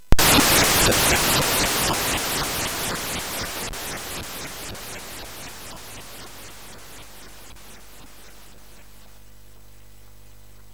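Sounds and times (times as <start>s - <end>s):
frantic chiptune music on MOS 6581R4 chip: 0.2s - 8.7s.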